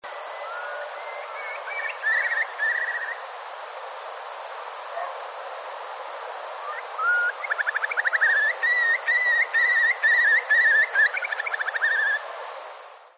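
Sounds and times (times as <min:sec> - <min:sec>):
Eurasian curlew calling: 0:00.4 - 0:03.2, 0:06.6 - 0:12.2.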